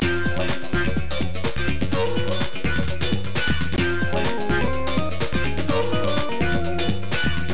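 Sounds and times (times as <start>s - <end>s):
music loop: 0.1s - 7.5s.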